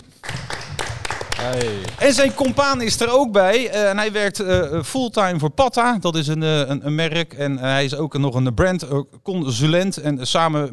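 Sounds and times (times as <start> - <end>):
audience applause: 0.0 - 3.1
speech: 1.4 - 10.7.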